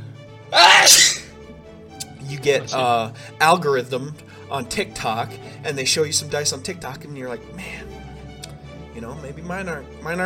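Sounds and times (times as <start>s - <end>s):
speech: 0.5s - 1.0s, 2.4s - 7.9s, 9.0s - 10.2s
sneeze: 0.6s - 1.3s.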